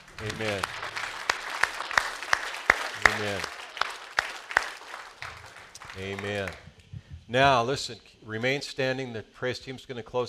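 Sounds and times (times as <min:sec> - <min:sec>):
audience applause: 0:00.0 - 0:06.7
speech: 0:00.2 - 0:00.8, 0:03.2 - 0:03.6, 0:06.0 - 0:06.6, 0:07.3 - 0:10.2.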